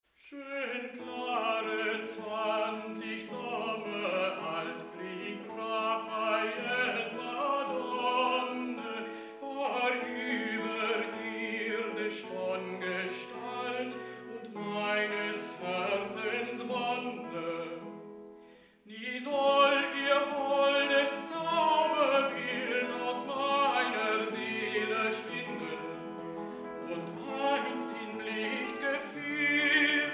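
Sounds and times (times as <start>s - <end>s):
lied art song: 0.3s - 30.1s.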